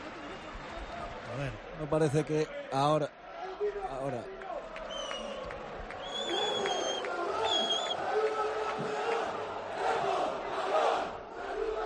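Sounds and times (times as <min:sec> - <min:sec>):
speech: 0:01.4 - 0:04.4
shrill whistle-like tones: 0:06.0 - 0:08.0
players chanting from a balcony: 0:06.3 - 0:11.8.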